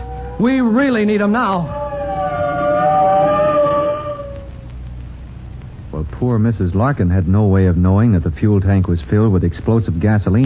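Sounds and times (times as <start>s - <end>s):
fire truck siren wailing: 0.0s - 4.7s
low engine rumble: 0.0s - 10.4s
speech: 0.4s - 1.8s, 6.2s - 10.4s.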